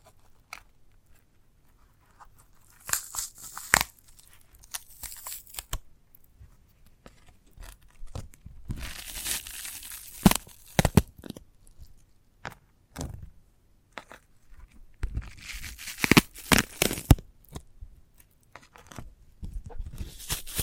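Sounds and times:
sharp cracks and crinkly scraping: 0.0 - 12.0, 14.0 - 20.6
sprouted coconut husk tearing and crunching: 2.6 - 5.8, 8.7 - 11.4, 15.2 - 17.2.

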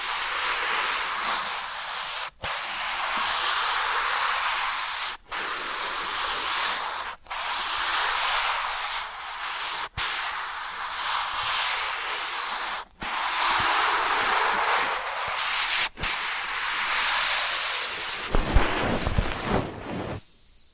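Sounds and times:
ear cleaning rustling hiss: 0.0 - 20.7
crackling bursts: 12.8 - 20.4.

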